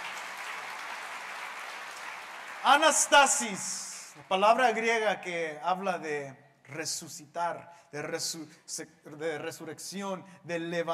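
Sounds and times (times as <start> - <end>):
audience applause: 0.0 - 4.4
speech: 2.6 - 10.9.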